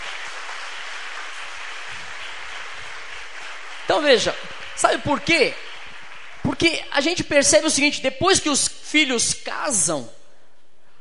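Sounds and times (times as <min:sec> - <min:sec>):
audience applause: 0:00.0 - 0:06.8
speech: 0:03.9 - 0:05.7, 0:06.4 - 0:10.2.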